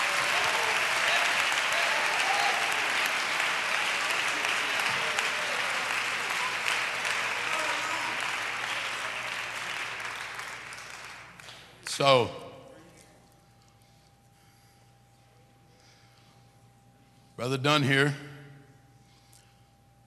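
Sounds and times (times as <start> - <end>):
audience clapping hands: 0.0 - 12.0
speech: 12.0 - 12.4, 17.4 - 18.3.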